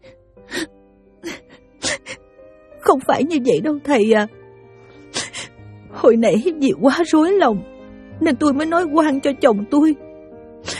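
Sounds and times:
woman crying in a Vietnamese radio drama: 0.5s - 2.2s
speech: 2.9s - 4.4s, 6.0s - 10.1s.

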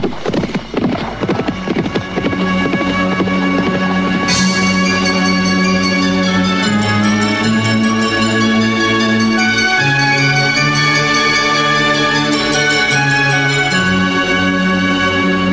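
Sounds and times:
galloping horse hooves: 0.0s - 14.8s.

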